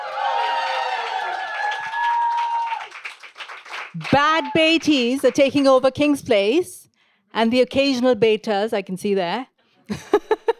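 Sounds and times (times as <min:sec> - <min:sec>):
audience cheering: 0:00.0 - 0:05.2
speech: 0:04.0 - 0:06.8, 0:07.4 - 0:10.0.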